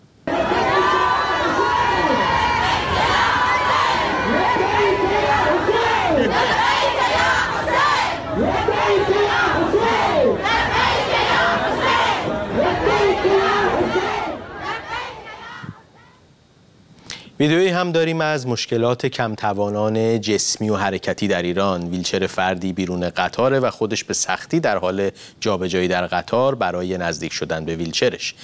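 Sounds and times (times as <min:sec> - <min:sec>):
women singing and chanting in stadium: 0:00.3 - 0:16.3
speech: 0:17.4 - 0:28.4.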